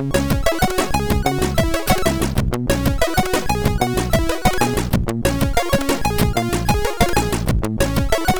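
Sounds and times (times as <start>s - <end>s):
SID chiptune save jingle: 0.1s - 8.3s.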